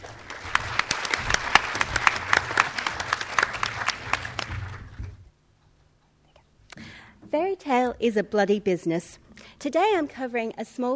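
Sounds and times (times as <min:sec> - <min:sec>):
audience applause welcoming a presenter to a talk on fairy tales: 0:00.0 - 0:05.2
speech: 0:07.3 - 0:10.9.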